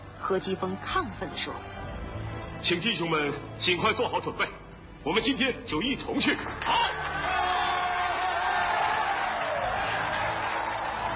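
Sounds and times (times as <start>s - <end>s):
speech: 0.2s - 1.8s, 2.6s - 7.0s
large crowd cheering and shouting in square: 6.6s - 11.1s.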